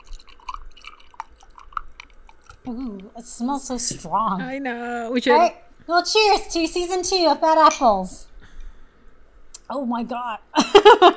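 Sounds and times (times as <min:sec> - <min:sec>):
fizzing drink crackling: 0:00.0 - 0:03.2
speech: 0:02.6 - 0:08.3, 0:09.7 - 0:11.1.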